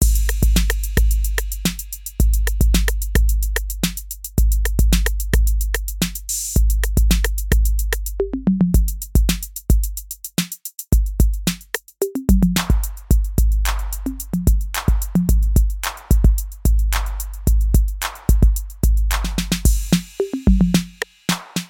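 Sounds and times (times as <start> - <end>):
808 drum machine on tape: 0.0 - 21.6.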